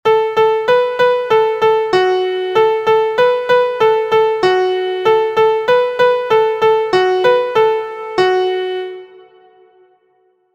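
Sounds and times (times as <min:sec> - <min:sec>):
MIDI music: 0:00.1 - 0:09.8.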